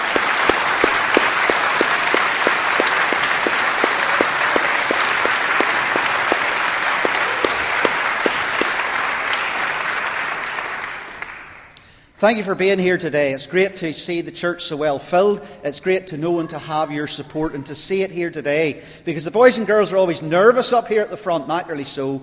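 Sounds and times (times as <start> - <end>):
audience applause in church: 0.0 - 11.6
speech: 12.2 - 22.2.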